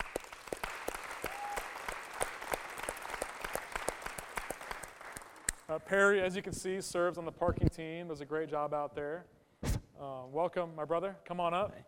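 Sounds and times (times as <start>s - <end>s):
audience applause: 0.0s - 5.5s
speech: 5.8s - 9.4s, 10.0s - 11.8s.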